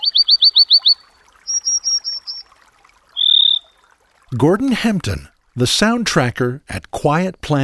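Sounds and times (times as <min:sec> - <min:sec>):
Western Meadowlark or American Dipper singing: 0:00.0 - 0:02.6, 0:03.2 - 0:03.8
speech: 0:04.3 - 0:07.6.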